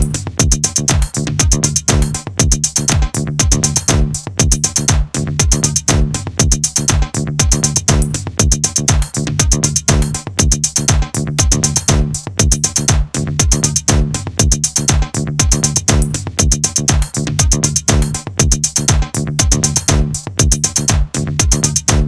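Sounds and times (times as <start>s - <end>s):
music beat: 0.0s - 22.0s.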